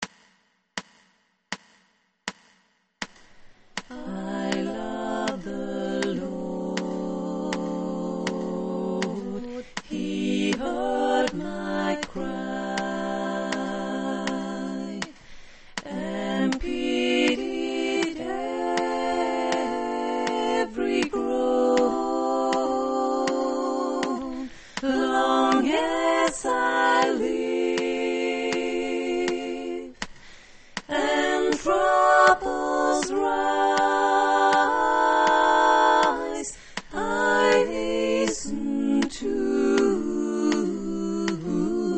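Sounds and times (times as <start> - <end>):
tenor singing: 3.8 - 30.1, 30.8 - 41.9.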